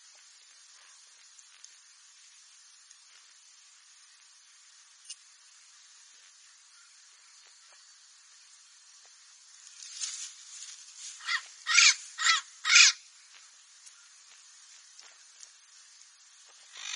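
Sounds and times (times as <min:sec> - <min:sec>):
parrot giving harsh raspy squawks: 0:11.2 - 0:13.0, 0:16.8 - 0:16.9.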